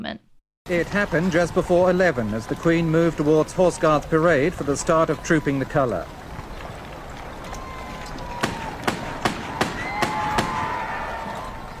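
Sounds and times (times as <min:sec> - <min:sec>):
speech: 0:00.0 - 0:06.2
blank shots fired from a replica revolver: 0:08.4 - 0:11.0.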